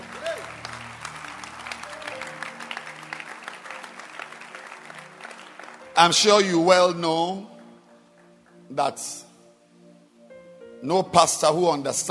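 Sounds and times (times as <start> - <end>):
church congregation clapping hands: 0.0 - 9.0
speech: 6.0 - 7.5, 8.8 - 9.2, 10.8 - 12.0.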